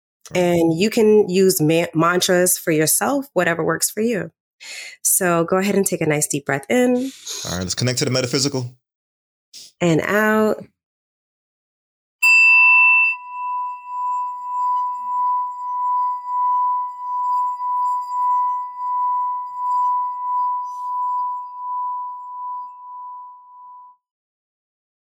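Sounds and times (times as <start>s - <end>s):
speech: 0.2s - 8.8s, 9.5s - 10.7s
laughter: 7.0s - 8.7s
singing bowl struck and rimmed: 12.2s - 24.0s.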